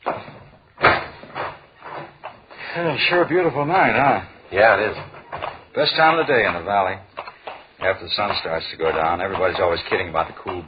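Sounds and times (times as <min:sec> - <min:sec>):
door opening and shutting: 0:00.0 - 0:02.5, 0:04.7 - 0:06.6
speech: 0:02.8 - 0:05.1, 0:05.8 - 0:07.1, 0:07.8 - 0:10.6.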